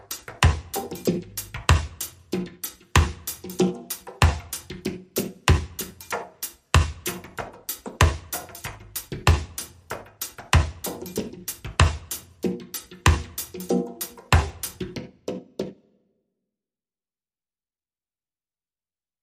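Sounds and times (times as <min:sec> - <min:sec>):
djembe drumming: 0:00.0 - 0:09.6, 0:10.4 - 0:15.6.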